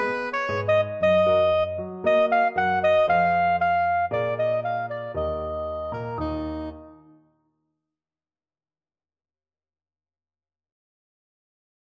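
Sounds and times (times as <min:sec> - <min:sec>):
soprano saxophone: 0:00.0 - 0:07.1.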